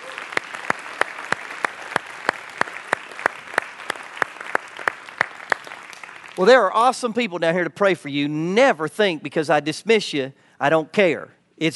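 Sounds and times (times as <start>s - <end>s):
audience applause with hand claps: 0.0s - 6.5s
speech: 6.4s - 11.7s.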